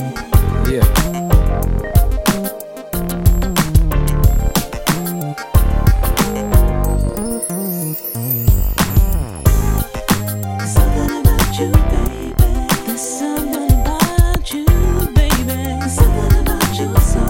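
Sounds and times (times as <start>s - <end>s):
Roland Fantom synthesizer: 0.0s - 17.2s.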